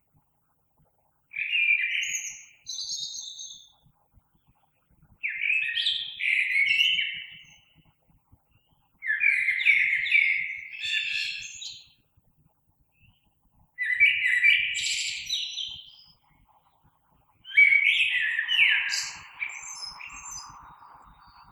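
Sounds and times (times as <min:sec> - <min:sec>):
blackbird: 0:01.3 - 0:03.8, 0:05.2 - 0:07.9, 0:08.5 - 0:12.0, 0:12.9 - 0:16.8, 0:17.4 - 0:21.4.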